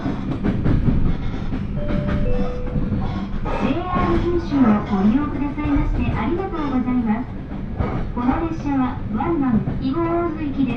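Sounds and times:
Hōhi Line train carriage rumble: 0.0 - 10.7
held tone: 1.8 - 3.4.

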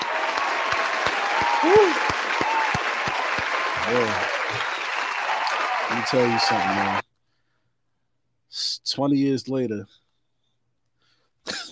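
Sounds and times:
round of applause: 0.0 - 7.0
speech: 1.6 - 2.2, 3.9 - 4.7, 6.0 - 7.1, 9.0 - 10.0.

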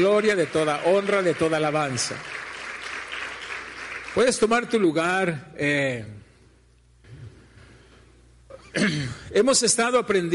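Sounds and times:
speech: 0.0 - 2.4, 4.2 - 6.2, 8.7 - 10.3
audience applause: 0.0 - 4.7.

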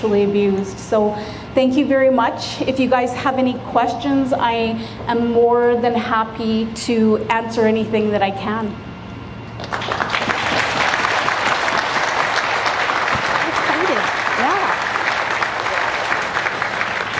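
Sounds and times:
speech: 0.0 - 8.9
audience clapping: 9.5 - 17.1.

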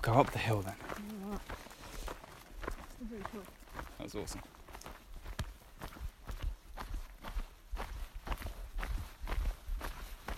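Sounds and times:
speech: 0.0 - 1.5, 3.0 - 4.6
hikers' footsteps on an uphill trail: 0.0 - 10.3.

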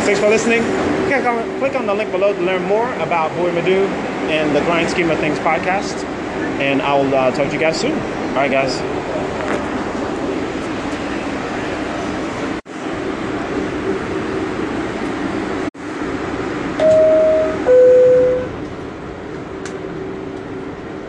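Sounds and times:
speech: 0.0 - 9.2
subway train roaring and rumbling: 0.0 - 21.0
two-note descending subway door chime: 16.8 - 18.6.

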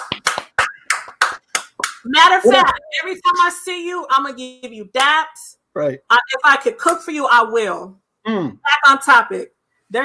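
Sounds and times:
clapping: 0.0 - 2.1
speech: 2.0 - 10.0.

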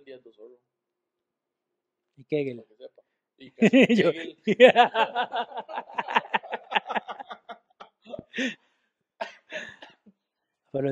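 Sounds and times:
speech: 2.2 - 5.9, 8.4 - 8.6
laughter: 3.6 - 8.6
person coughing: 9.2 - 10.0.

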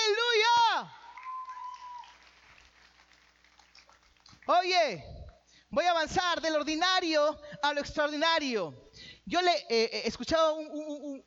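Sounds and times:
audience applause: 1.1 - 4.5
speech: 4.5 - 11.2.

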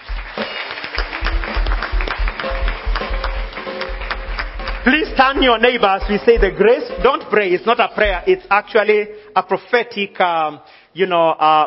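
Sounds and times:
audience clapping: 0.0 - 8.4
speech: 4.8 - 11.6.

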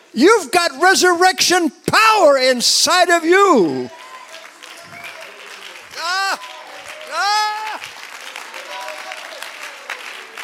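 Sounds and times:
speech: 0.1 - 4.0
audience clapping in excitement: 2.9 - 10.4.

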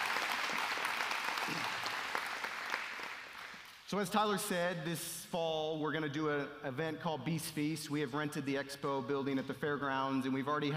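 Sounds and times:
round of applause: 0.0 - 3.8
speech: 3.9 - 10.7.

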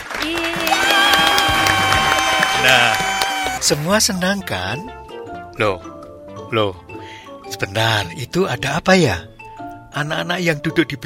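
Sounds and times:
children clapping at a storytelling event: 0.0 - 3.8
speech: 2.7 - 3.0, 3.6 - 6.8, 7.5 - 9.3, 10.0 - 11.0.

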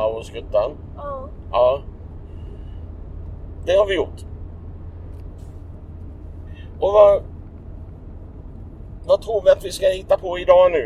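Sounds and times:
car driving on a road in Sweden: 0.0 - 10.8
speech: 0.2 - 1.9, 3.6 - 4.3, 6.8 - 7.3, 9.0 - 10.8.

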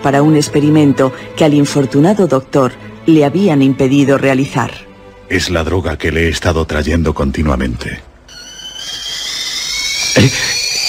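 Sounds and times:
speech: 0.0 - 8.1, 10.2 - 10.6
kettle whistling: 8.3 - 10.8.

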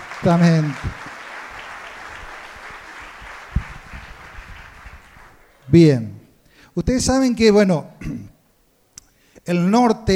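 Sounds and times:
audience applause: 0.0 - 5.4
speech: 0.2 - 1.0, 5.7 - 6.2, 6.8 - 8.3, 9.5 - 10.1.

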